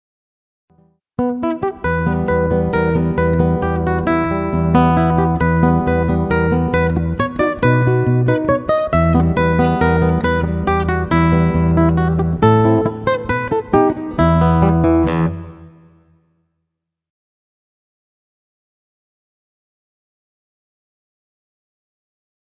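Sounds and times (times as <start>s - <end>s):
guitar solo: 1.2s - 16.2s.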